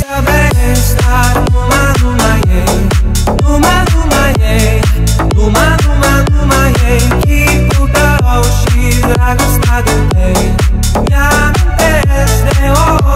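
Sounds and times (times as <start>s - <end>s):
Romanian club music ringtone: 0.2s - 13.1s.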